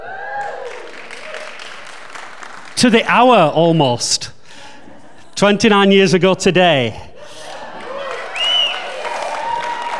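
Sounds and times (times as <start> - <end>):
audience applause: 0.1 - 3.0, 7.3 - 9.9
speech: 2.8 - 4.4, 5.4 - 7.1.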